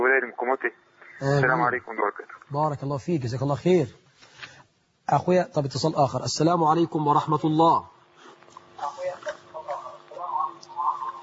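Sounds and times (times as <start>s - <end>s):
television voices through a telephone line: 0.0s - 2.9s, 6.6s - 11.2s
speech: 0.4s - 4.0s, 5.1s - 7.9s.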